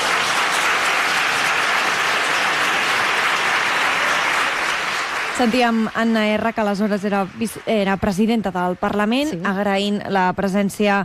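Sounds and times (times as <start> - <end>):
parliament ovation applause: 0.0 - 8.2
speech: 5.4 - 11.0.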